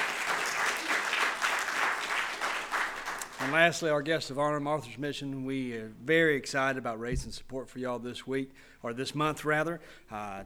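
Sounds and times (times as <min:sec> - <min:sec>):
audience applause: 0:00.0 - 0:03.8
speech: 0:03.5 - 0:10.4.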